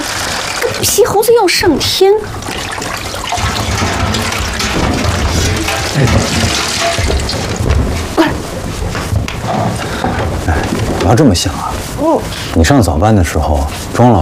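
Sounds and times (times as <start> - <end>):
hot water being poured: 0.0 - 8.1
speech: 0.8 - 2.8, 11.1 - 14.2
soft knocks and thumps: 2.4 - 12.0.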